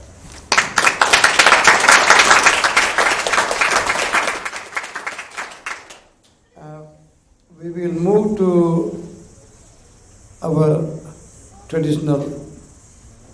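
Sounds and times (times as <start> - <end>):
audience applause: 0.5 - 6.2
speech: 7.7 - 9.0, 11.8 - 12.3.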